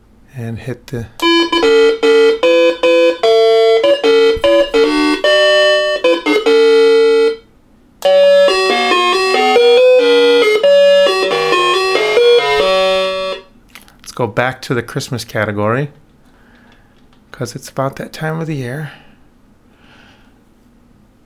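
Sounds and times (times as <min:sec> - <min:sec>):
speech: 0:00.4 - 0:01.9, 0:14.2 - 0:16.0, 0:17.4 - 0:19.0
doorbell chime playing a song: 0:01.2 - 0:07.4, 0:08.0 - 0:13.4.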